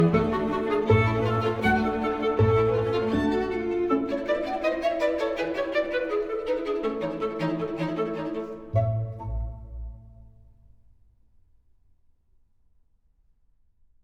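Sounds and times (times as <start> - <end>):
clarinet: 0.0 - 10.0
strings: 0.0 - 10.5.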